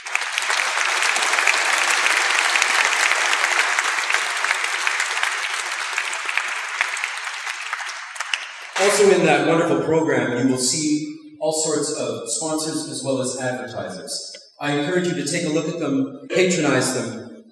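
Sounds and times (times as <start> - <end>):
audience applause: 0.0 - 9.2
speech: 8.9 - 17.2.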